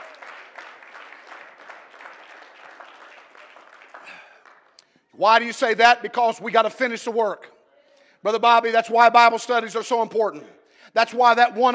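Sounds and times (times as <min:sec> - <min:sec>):
people clapping: 0:00.0 - 0:05.1
speech: 0:05.2 - 0:07.5, 0:08.2 - 0:11.7.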